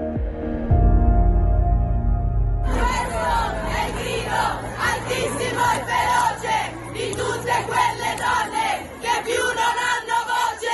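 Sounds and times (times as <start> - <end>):
low rumble: 0.2 - 6.0
large protest crowd shouting fiercely: 2.7 - 10.7.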